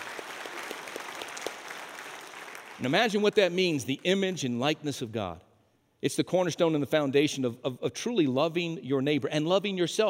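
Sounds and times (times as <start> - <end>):
audience clapping: 0.0 - 3.5
speech: 2.8 - 10.0.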